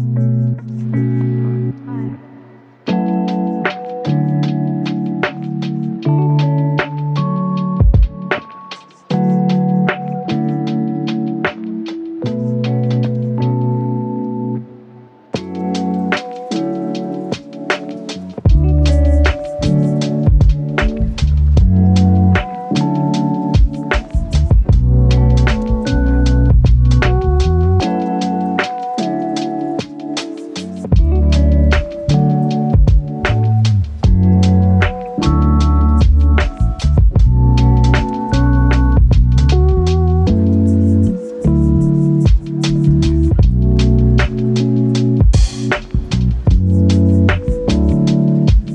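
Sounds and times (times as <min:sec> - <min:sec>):
lofi hip hop: 0:00.2 - 0:14.2, 0:15.2 - 0:48.7.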